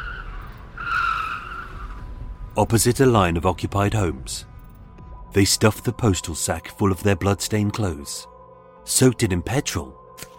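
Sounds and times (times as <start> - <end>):
car skidding: 0.0 - 2.3
black Ford Mondeo engine roaring: 0.0 - 4.8
speech: 2.6 - 4.5, 5.3 - 10.3.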